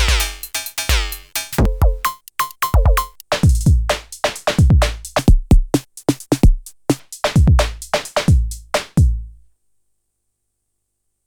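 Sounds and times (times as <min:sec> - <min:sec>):
Polyend Tracker PERC engine percussion: 0:00.0 - 0:09.0.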